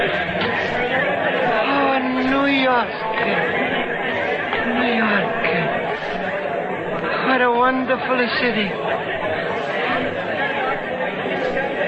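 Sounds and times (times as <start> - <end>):
big crowd chattering: 0.0 - 11.8
speech: 7.9 - 9.6.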